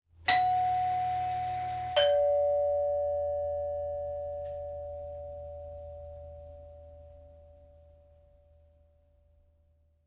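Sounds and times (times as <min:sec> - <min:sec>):
doorbell: 0:00.3 - 0:07.6.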